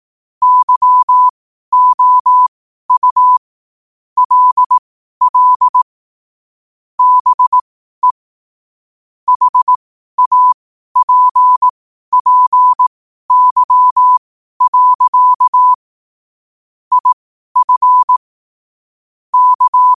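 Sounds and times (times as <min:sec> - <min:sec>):
morse code at 5 wpm: 0:00.4 - 0:03.4, 0:04.2 - 0:05.8, 0:07.0 - 0:08.2, 0:09.3 - 0:15.8, 0:16.9 - 0:18.2, 0:19.3 - 0:19.9.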